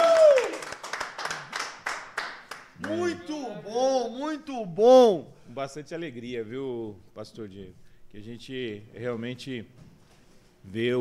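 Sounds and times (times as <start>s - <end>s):
round of applause: 0.0s - 3.3s
speech: 2.9s - 9.9s, 10.6s - 10.9s.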